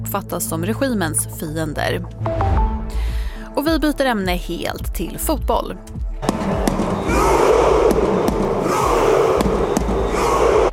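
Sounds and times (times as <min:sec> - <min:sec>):
speech: 0:00.1 - 0:02.6, 0:03.6 - 0:06.4
Norway football fans cheering after World Cup win: 0:06.2 - 0:10.7
sharp percussive bangs: 0:06.2 - 0:10.7.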